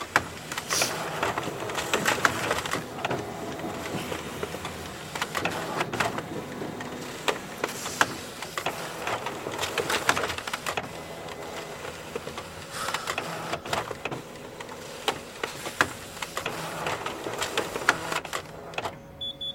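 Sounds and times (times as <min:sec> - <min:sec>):
slow Xerox copier whirring in a gym: 0:00.0 - 0:19.5.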